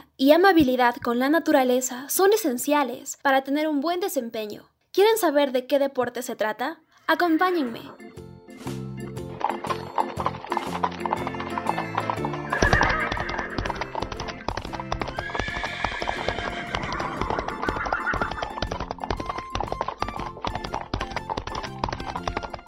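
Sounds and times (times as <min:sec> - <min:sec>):
speech: 0:00.2 - 0:08.7
horse hooves clip-clopping: 0:08.7 - 0:22.6
horse neighing: 0:09.8 - 0:14.1, 0:14.8 - 0:18.7.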